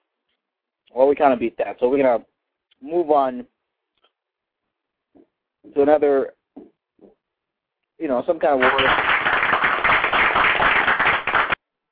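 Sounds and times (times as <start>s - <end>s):
speech: 0.9s - 3.5s, 5.6s - 7.2s, 8.0s - 9.1s
applause from many hands clapping: 8.4s - 11.6s.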